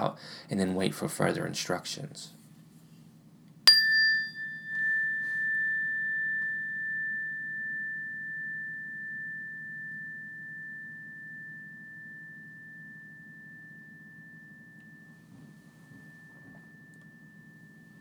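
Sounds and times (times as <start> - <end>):
speech: 0.0 - 2.4
meditation bell ringing: 3.7 - 17.9.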